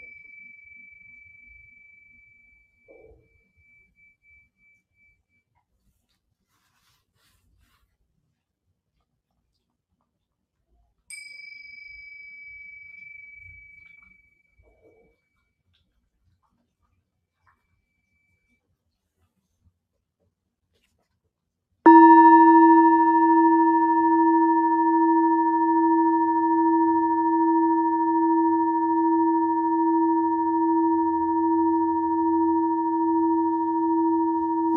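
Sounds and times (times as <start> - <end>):
singing bowl ringing from Mexico: 0.0 - 5.2, 11.1 - 15.0, 21.9 - 34.7.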